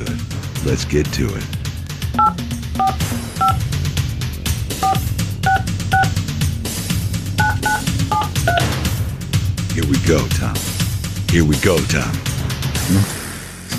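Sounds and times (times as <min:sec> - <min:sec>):
music bed: 0:00.0 - 0:13.7
speech: 0:00.7 - 0:01.6, 0:09.8 - 0:10.7, 0:11.3 - 0:12.3, 0:12.9 - 0:13.2
telephone number being dialed: 0:02.2 - 0:03.6, 0:04.8 - 0:06.2, 0:07.4 - 0:08.6.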